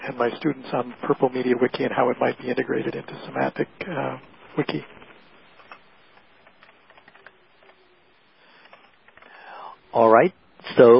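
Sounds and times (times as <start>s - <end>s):
hiss: 0.0s - 10.9s
speech: 0.1s - 4.9s, 10.0s - 10.9s
typing a line into a chat on a computer keyboard: 6.4s - 7.8s.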